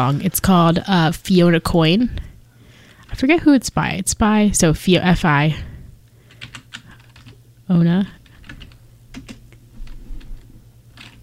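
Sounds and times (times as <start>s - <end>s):
speech: 0.0s - 2.3s, 3.1s - 5.7s, 7.7s - 8.2s
low steady hum: 0.0s - 11.2s
typing on a computer keyboard: 6.3s - 7.4s, 8.2s - 11.2s.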